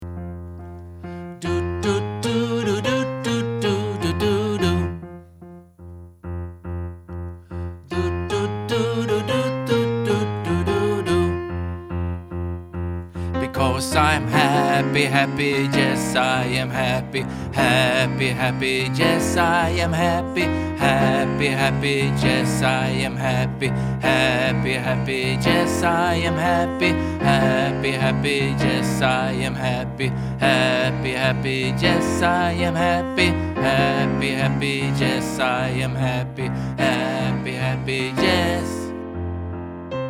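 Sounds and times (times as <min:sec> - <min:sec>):
bass: 0:00.0 - 0:40.0.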